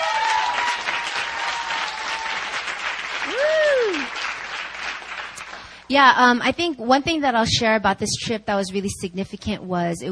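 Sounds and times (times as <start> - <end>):
audience applause: 0.0 - 5.8
speech: 5.9 - 10.1.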